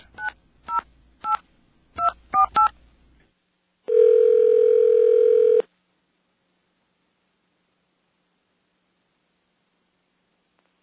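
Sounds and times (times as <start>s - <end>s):
long steady buzzy telephone tone: 3.9s - 5.7s.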